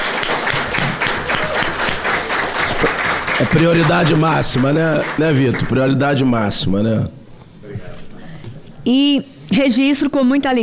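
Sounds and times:
audience applause: 0.0 - 6.4
speech: 3.4 - 7.9, 8.8 - 10.6.

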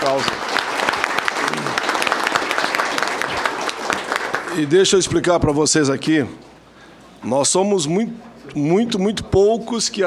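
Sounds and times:
speech: 0.0 - 0.5, 4.6 - 6.5, 7.2 - 10.0
audience applause: 0.0 - 4.8.

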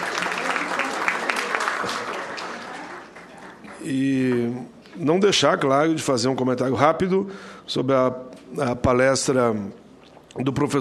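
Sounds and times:
round of applause: 0.0 - 4.0
speech: 1.8 - 2.1, 3.8 - 9.8, 10.4 - 10.7.

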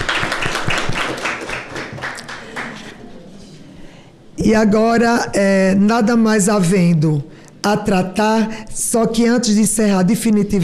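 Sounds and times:
audience applause: 0.0 - 3.0
speech: 4.5 - 10.6.

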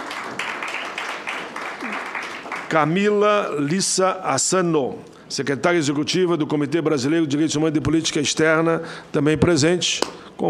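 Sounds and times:
audience applause at a human rights event: 0.0 - 3.1
speech: 2.7 - 10.4.

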